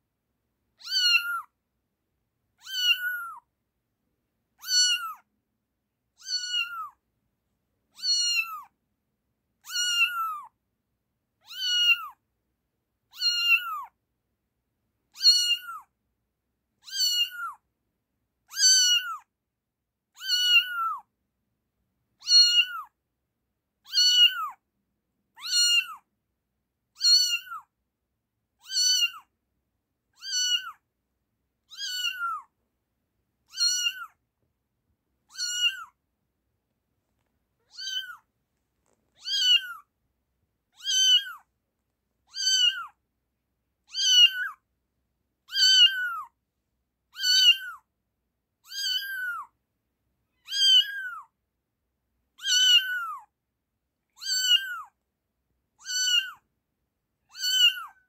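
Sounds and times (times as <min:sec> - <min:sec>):
kitten meowing: 0:00.8 - 0:01.5, 0:02.6 - 0:03.5, 0:04.6 - 0:05.3, 0:06.2 - 0:07.0, 0:07.9 - 0:08.7, 0:09.6 - 0:10.6, 0:11.4 - 0:12.2, 0:13.1 - 0:14.0, 0:15.1 - 0:15.9, 0:16.8 - 0:17.6, 0:18.5 - 0:19.3, 0:20.2 - 0:21.1, 0:22.2 - 0:23.0, 0:23.8 - 0:24.6, 0:25.3 - 0:26.1, 0:27.0 - 0:27.7, 0:28.6 - 0:29.3, 0:30.2 - 0:30.8, 0:31.6 - 0:32.5, 0:33.4 - 0:34.2, 0:35.2 - 0:36.0, 0:37.6 - 0:39.9, 0:40.7 - 0:41.5, 0:42.3 - 0:43.0, 0:43.9 - 0:44.6, 0:45.5 - 0:46.4, 0:47.1 - 0:47.9, 0:48.6 - 0:49.6, 0:50.3 - 0:51.3, 0:52.4 - 0:53.3, 0:54.2 - 0:55.0, 0:55.8 - 0:56.5, 0:57.2 - 0:58.0.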